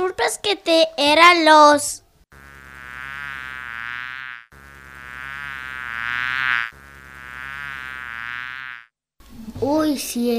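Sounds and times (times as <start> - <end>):
speech: 0.2 - 2.0, 9.6 - 10.3
bee buzzing: 2.3 - 9.0.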